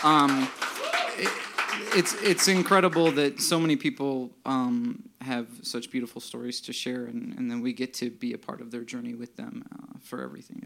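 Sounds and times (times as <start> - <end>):
audience applause: 0.0 - 3.6
loud sustained crowd cheer or shout: 0.0 - 3.7
speech: 0.0 - 10.6.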